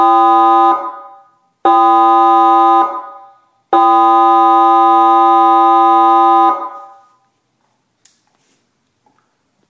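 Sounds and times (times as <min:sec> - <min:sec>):
12V 100W seven-tone warning siren system: 0:00.0 - 0:07.2.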